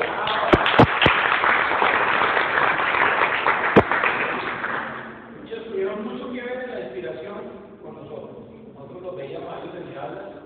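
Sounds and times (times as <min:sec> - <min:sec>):
audience applause: 0:00.0 - 0:05.1.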